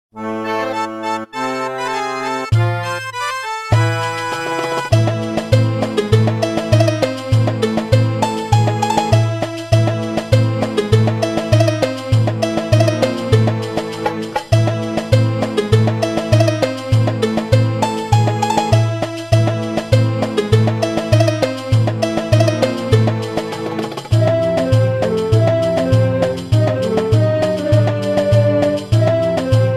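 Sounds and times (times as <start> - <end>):
desert theme music: 0.1 - 29.7.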